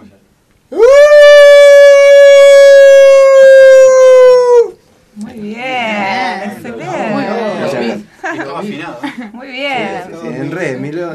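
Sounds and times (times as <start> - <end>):
person imitating a zombie wolf howl: 0.7 - 4.8.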